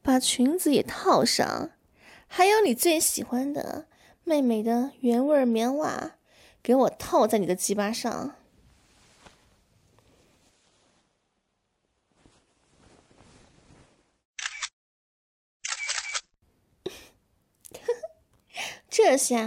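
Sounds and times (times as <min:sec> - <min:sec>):
speech: 0:00.2 - 0:08.4, 0:19.0 - 0:19.4
faint rustling and movement: 0:08.5 - 0:14.2
camera shutter clicks: 0:14.4 - 0:14.7, 0:15.6 - 0:16.3.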